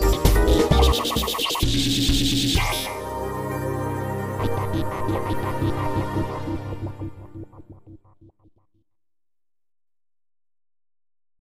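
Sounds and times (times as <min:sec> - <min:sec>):
house music on synthesizer: 0:00.0 - 0:08.2.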